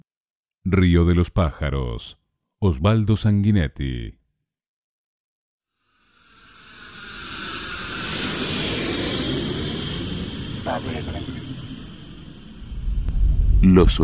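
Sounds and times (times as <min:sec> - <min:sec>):
speech: 0:00.6 - 0:04.2, 0:10.7 - 0:11.5, 0:13.6 - 0:14.0
airplane landing engine roar: 0:06.2 - 0:13.3.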